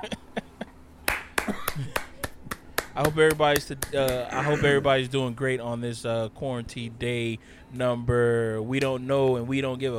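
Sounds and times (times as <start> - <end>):
speech: 0.0 - 0.2, 3.0 - 9.9
clapping sound effect: 1.0 - 4.2.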